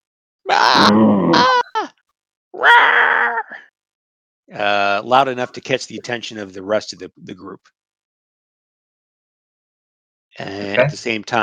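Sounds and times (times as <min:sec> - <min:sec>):
voice imitating a goblin's mighty scream: 0:00.5 - 0:01.9, 0:02.6 - 0:03.7
speech: 0:00.6 - 0:01.5, 0:04.5 - 0:07.8, 0:10.4 - 0:11.4.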